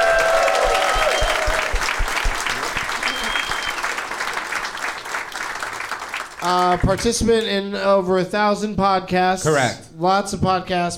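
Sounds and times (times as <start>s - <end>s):
audience applause welcoming a first-time guest on a live show: 0.0s - 7.5s
speech: 6.5s - 10.9s.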